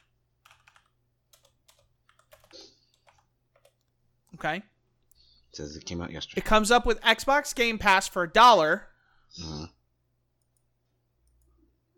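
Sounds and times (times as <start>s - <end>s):
typing on a Windows 10 PC keyboard: 0.0s - 4.4s, 10.4s - 11.6s
speech: 4.4s - 4.7s, 5.5s - 9.7s.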